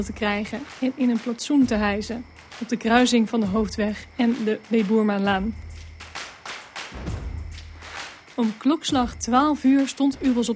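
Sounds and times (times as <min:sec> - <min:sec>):
speech: 0:00.0 - 0:05.6, 0:08.4 - 0:10.5
scattered clapping from gathered onlookers: 0:00.0 - 0:10.5.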